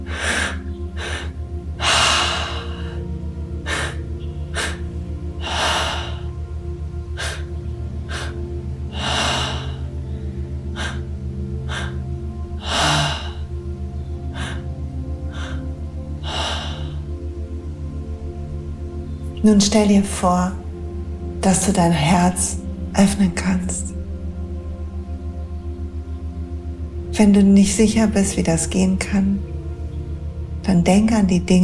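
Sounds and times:
slow deep inhalations during a guided breathing meditation: 0.0 - 6.5, 7.1 - 13.6, 14.2 - 17.2
steady low drone: 0.0 - 31.6
speech: 19.4 - 20.6, 21.4 - 23.9, 27.2 - 29.5, 30.7 - 31.6.

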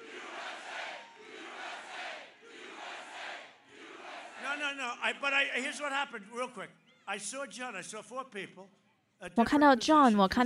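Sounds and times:
crowd chanting USA: 0.0 - 5.7
speech: 4.6 - 10.4.

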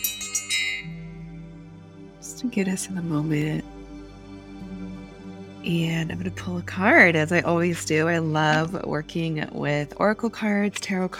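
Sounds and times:
ritual bell ringing: 0.0 - 1.0
speech: 2.4 - 3.8, 5.7 - 11.1.

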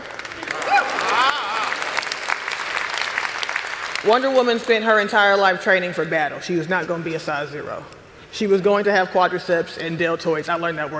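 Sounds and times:
audience applause: 0.0 - 4.1
people whooping and cheering: 0.2 - 2.3
speech: 4.0 - 10.9.

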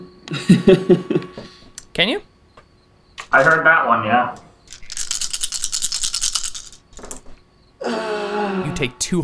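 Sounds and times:
laughter: 0.3 - 1.6
speech: 0.3 - 2.3, 3.3 - 4.4, 8.8 - 9.2
dice rolling and rattling: 3.2 - 3.7, 4.7 - 7.4.

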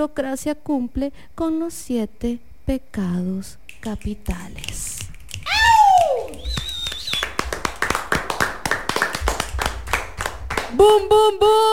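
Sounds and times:
speech: 0.0 - 5.0, 10.7 - 11.7
audience finger snapping: 3.7 - 10.8.

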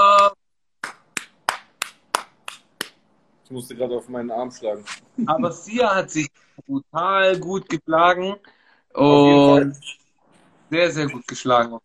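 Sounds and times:
applause: 0.2 - 2.7
speech: 3.5 - 10.0, 10.7 - 11.8.

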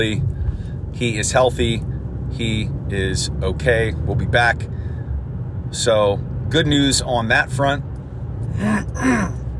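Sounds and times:
speech: 0.0 - 0.3, 1.0 - 4.8, 5.7 - 7.9, 8.5 - 9.4
person coughing: 8.6 - 9.4.

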